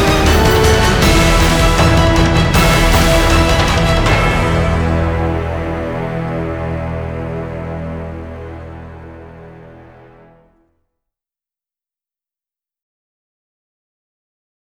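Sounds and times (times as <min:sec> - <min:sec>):
orchestra playing: 0:00.0 - 0:10.6.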